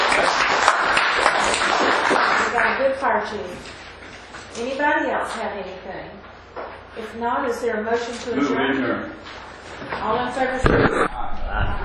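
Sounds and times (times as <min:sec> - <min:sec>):
applause from attendees at a fire department meeting: 0:00.0 - 0:02.9
speech: 0:03.0 - 0:03.8, 0:04.6 - 0:11.8.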